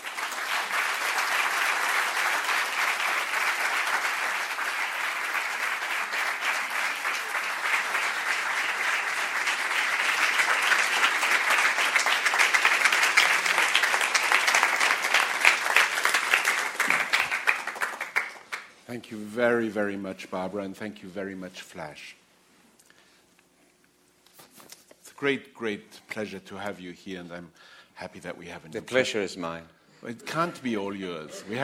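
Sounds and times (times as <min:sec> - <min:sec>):
audience applause welcoming a novelist at a New York literary event: 0:00.0 - 0:18.7
speech: 0:19.0 - 0:22.2, 0:25.2 - 0:31.6.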